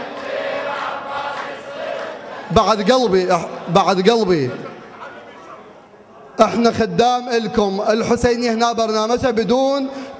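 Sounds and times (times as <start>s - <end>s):
large crowd chanting takbir at a religious gathering: 0.0s - 3.7s
speech: 2.5s - 4.7s, 6.4s - 10.0s.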